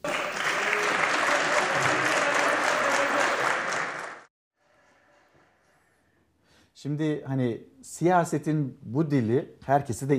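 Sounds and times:
applause from a large group in a parliamentary chamber: 0.0s - 4.3s
speech: 6.8s - 10.1s.

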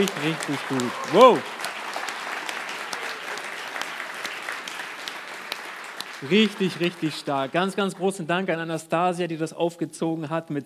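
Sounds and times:
speech: 0.0s - 1.6s, 6.2s - 10.6s
audience applause: 0.0s - 8.2s.

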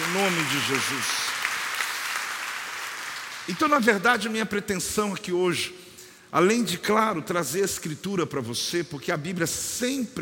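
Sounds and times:
audience applause: 0.0s - 3.7s
speech: 0.1s - 1.4s, 3.5s - 10.2s.

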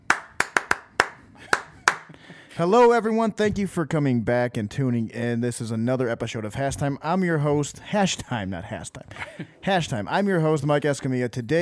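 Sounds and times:
hand claps: 0.0s - 2.3s
speech: 2.6s - 11.6s.

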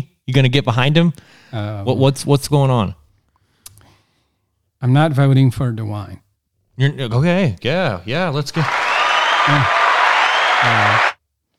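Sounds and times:
speech: 0.0s - 3.0s, 4.8s - 6.2s, 6.8s - 8.8s, 9.5s - 9.8s, 10.6s - 11.1s
applause: 8.5s - 11.2s.

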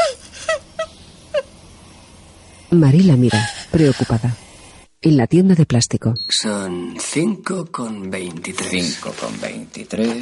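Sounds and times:
woman sobbing: 0.0s - 1.6s, 3.2s - 4.4s
speech: 2.7s - 4.4s, 5.0s - 10.1s.

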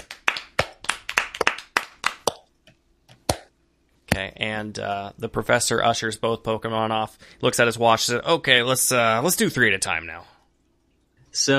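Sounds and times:
people clapping: 0.0s - 2.4s
speech: 4.2s - 10.4s, 11.4s - 11.5s.

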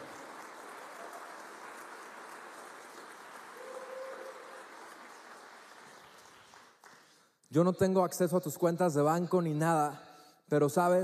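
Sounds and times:
audience applauding: 0.0s - 7.3s
speech: 7.5s - 11.0s.

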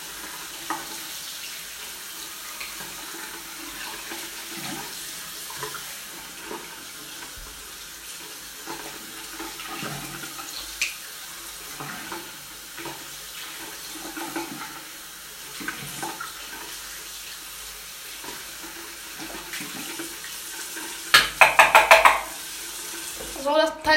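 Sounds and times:
running tap water splashing into a container being rinsed: 0.3s - 1.2s, 2.6s - 11.1s, 11.7s - 14.9s, 15.4s - 16.7s, 18.2s - 23.9s.

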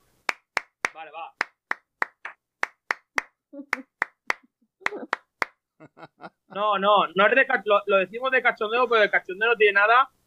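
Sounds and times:
rhythmic flamenco hand clapping palmas de tango: 0.2s - 5.6s
speech: 1.0s - 1.5s, 6.6s - 10.2s
laughter: 5.8s - 6.8s.

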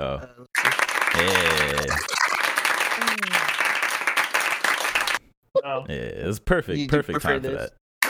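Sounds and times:
speech: 0.0s - 0.5s, 1.1s - 2.1s, 5.7s - 7.8s
applause sound effect: 0.6s - 5.2s.

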